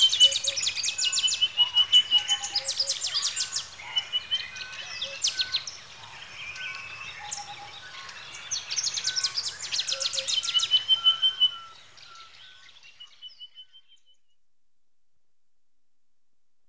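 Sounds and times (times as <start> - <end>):
birds at a lakeside: 0.0 - 14.2.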